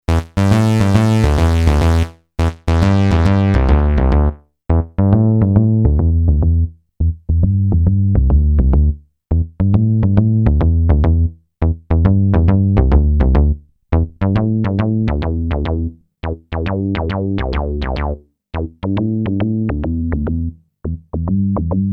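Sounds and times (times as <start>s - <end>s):
Peavey Spectrum analog filter saw bass: 0.0s - 21.9s.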